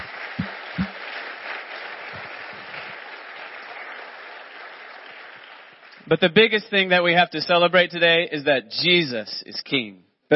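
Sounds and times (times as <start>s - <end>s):
audience applauding: 0.0s - 6.1s
speech: 6.1s - 10.3s.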